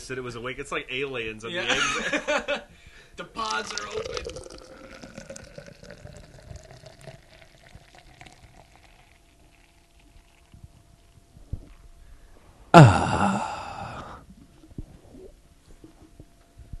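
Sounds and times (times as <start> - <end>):
speech: 0.1 - 4.8, 12.8 - 13.1
laughter: 1.5 - 2.7
nitrogen-widget can of Guinness foaming as it is poured: 3.4 - 11.3.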